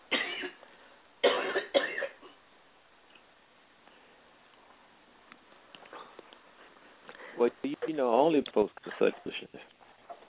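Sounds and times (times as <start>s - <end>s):
person coughing: 0.1s - 0.6s, 1.2s - 2.4s
faint rustling: 3.0s - 10.2s
shuffling: 3.8s - 10.2s
speech: 7.4s - 9.8s.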